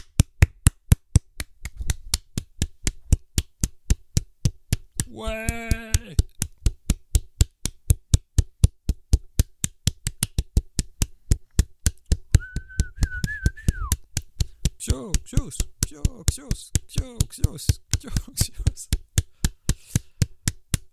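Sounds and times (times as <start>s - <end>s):
rhythmic hand clapping: 0.0s - 20.9s
speech: 5.1s - 5.6s, 14.9s - 19.0s
brief whistling tone: 12.4s - 13.9s.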